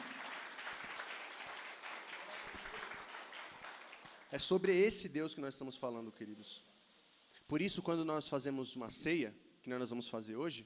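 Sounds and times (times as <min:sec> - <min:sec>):
audience applauding: 0:00.0 - 0:04.4
speech: 0:04.3 - 0:06.8, 0:07.5 - 0:10.6.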